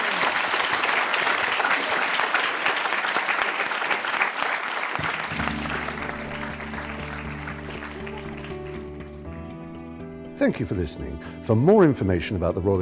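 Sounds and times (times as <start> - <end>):
audience applause: 0.0 - 9.5
speech: 10.4 - 12.7.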